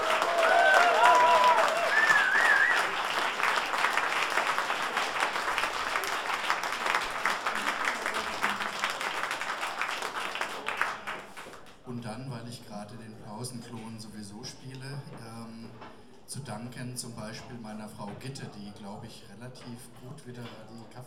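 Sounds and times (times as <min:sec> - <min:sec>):
whistles and cheers: 0:00.0 - 0:03.3
audience applause: 0:00.0 - 0:11.6.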